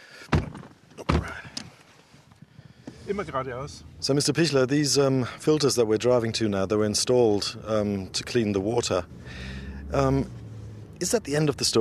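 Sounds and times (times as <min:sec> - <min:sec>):
car doors shutting: 0:00.2 - 0:01.8
speech: 0:03.1 - 0:10.4, 0:11.0 - 0:11.7.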